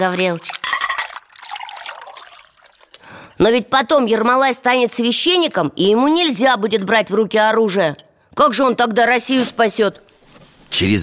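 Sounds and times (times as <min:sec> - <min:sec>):
speech: 0:00.0 - 0:00.6, 0:03.4 - 0:10.0, 0:10.7 - 0:11.0
tea being poured into a cup: 0:00.2 - 0:03.3.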